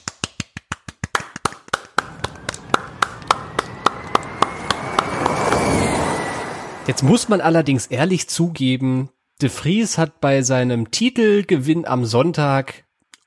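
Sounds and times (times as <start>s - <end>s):
small round of applause: 0.0s - 5.4s
speech: 6.9s - 12.9s.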